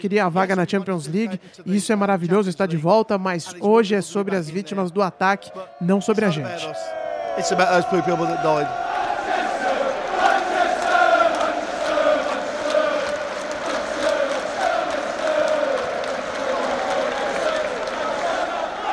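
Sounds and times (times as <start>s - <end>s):
speech: 0.0s - 8.9s
crowd roar: 5.4s - 18.9s
stadium crowd of football fans singing a melodic chant: 7.5s - 18.9s.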